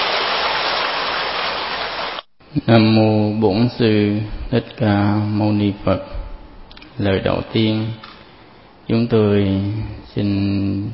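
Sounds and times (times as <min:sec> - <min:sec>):
audience applause: 0:00.0 - 0:02.2
speech: 0:02.6 - 0:06.2, 0:07.0 - 0:08.1, 0:08.9 - 0:10.9.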